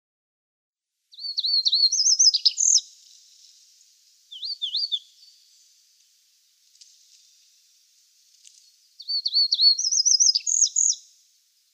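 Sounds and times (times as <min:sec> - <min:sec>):
chestnut bunting song: 0:01.1 - 0:07.8, 0:08.5 - 0:11.7.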